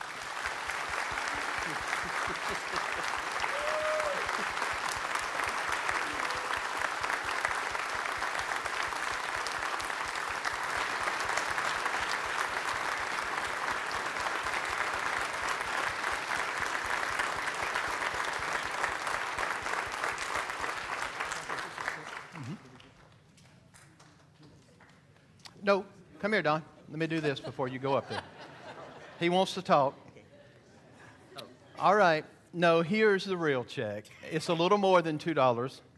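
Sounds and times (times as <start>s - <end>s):
audience applause: 0.0s - 23.2s
laughter: 1.2s - 4.7s, 27.1s - 29.4s
speech: 25.7s - 28.2s, 29.2s - 30.0s, 31.8s - 35.9s.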